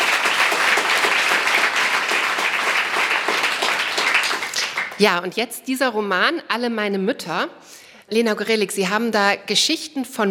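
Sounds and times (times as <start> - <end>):
audience applause: 0.0 - 5.1
speech: 5.0 - 10.2.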